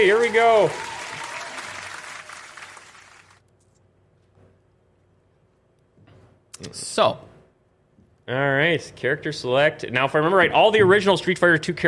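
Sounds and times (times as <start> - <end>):
speech: 0.0 - 0.9, 6.6 - 7.3, 8.3 - 11.8
applause: 0.0 - 3.4.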